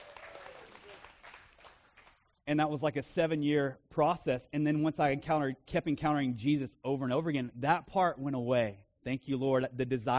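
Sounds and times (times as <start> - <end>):
audience applause: 0.0 - 2.2
speech: 2.5 - 10.1.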